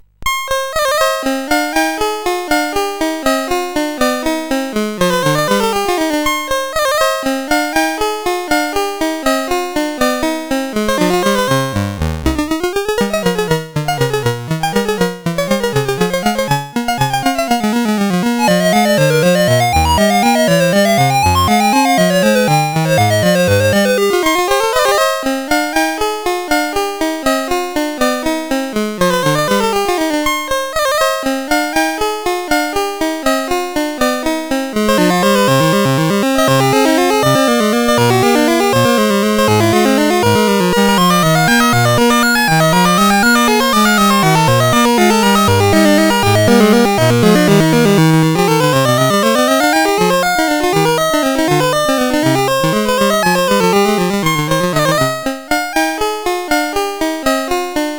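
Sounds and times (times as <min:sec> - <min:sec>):
baroque piece on a SID CSG8580R5 chip: 0:00.0 - 0:57.9.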